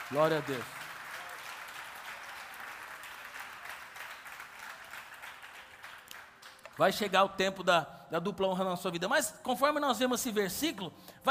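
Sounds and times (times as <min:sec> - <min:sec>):
audience applauding: 0:00.0 - 0:06.7
speech: 0:00.1 - 0:00.8, 0:06.8 - 0:11.2.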